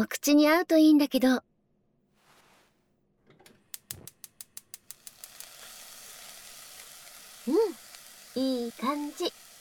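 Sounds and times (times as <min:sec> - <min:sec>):
speech: 0:00.0 - 0:01.5, 0:07.5 - 0:07.8, 0:08.4 - 0:09.4
sharp clicks: 0:03.4 - 0:05.4
ingredients stir-frying in a pan: 0:03.8 - 0:09.6.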